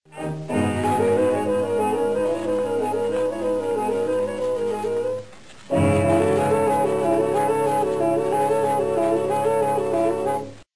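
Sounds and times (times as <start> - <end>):
lament melody in fourths: 0.1 - 5.2, 5.8 - 10.6.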